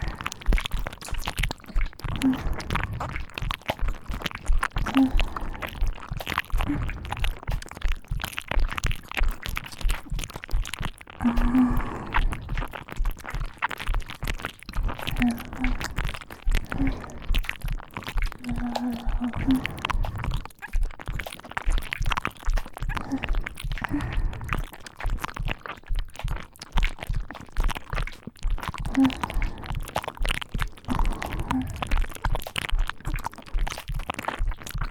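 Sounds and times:
ear licking on both ears: 0.0s - 34.8s
person counting: 4.9s - 5.8s, 11.2s - 12.4s, 15.1s - 17.3s, 18.3s - 20.3s, 28.9s - 29.7s, 30.9s - 31.9s.

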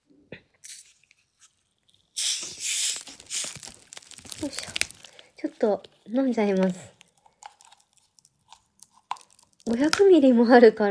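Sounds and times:
plastic bottle cap twisting: 0.6s - 5.3s, 6.5s - 10.2s
carbonated drink bottle fizzing hiss: 2.1s - 3.7s
speech: 5.6s - 7.0s, 9.7s - 10.8s.

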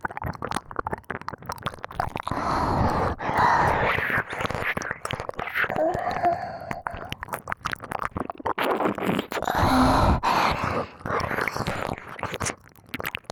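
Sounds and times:
ASMR ear licking: 0.3s - 13.3s
girlish voice: 2.3s - 7.2s, 9.4s - 12.2s.

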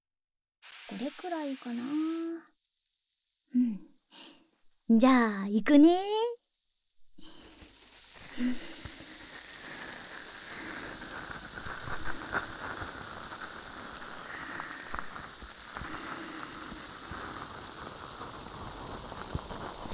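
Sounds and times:
foam crackling during ear cleaning: 0.6s - 2.5s, 7.0s - 19.9s
speech: 0.9s - 2.5s, 3.5s - 4.3s, 4.9s - 6.4s, 8.4s - 8.7s.

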